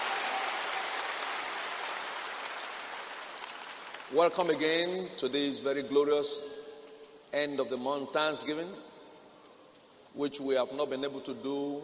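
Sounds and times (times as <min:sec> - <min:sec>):
congregation applause during a church thanksgiving service: 0:00.0 - 0:04.5
speech: 0:04.1 - 0:06.6, 0:07.3 - 0:08.9, 0:10.1 - 0:11.8.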